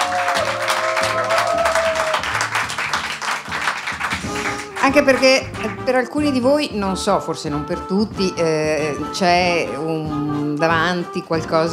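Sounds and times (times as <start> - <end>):
audience applause: 0.0 - 5.8
speech: 4.9 - 11.7.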